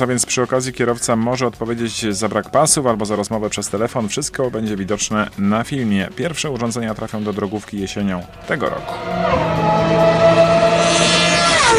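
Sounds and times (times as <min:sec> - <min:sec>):
speech: 0:00.0 - 0:11.3
Formula 1 racing car engine screaming: 0:08.3 - 0:11.7.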